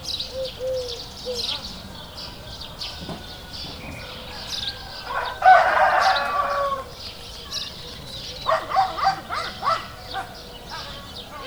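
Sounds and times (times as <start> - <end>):
rooster crowing: 2.4 - 7.1, 8.4 - 11.4.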